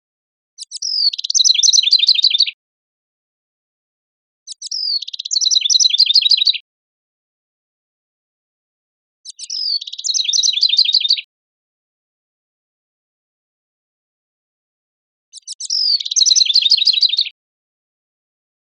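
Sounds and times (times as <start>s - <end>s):
house wren singing bubbling trills: 0.6s - 2.5s, 4.5s - 6.6s, 9.3s - 11.2s, 15.4s - 17.3s
speech: 1.0s - 1.4s.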